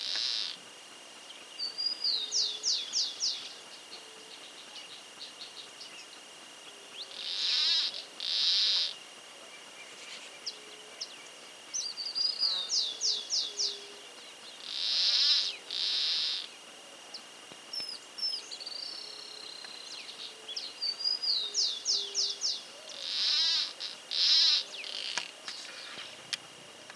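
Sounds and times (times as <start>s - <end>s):
plantcutter bird calling: 0.0s - 0.6s, 1.6s - 9.0s, 9.7s - 16.5s, 17.1s - 26.2s.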